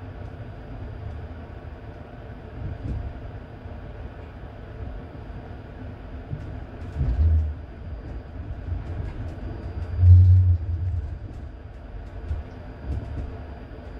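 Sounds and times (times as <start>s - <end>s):
locomotive rumbling: 6.9s - 12.3s.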